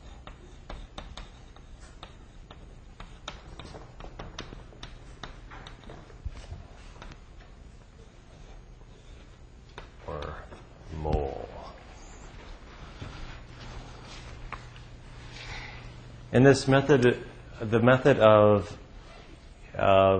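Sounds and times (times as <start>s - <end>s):
chalk writing on a board during a lecture: 0.0s - 7.2s
speech: 16.4s - 18.8s.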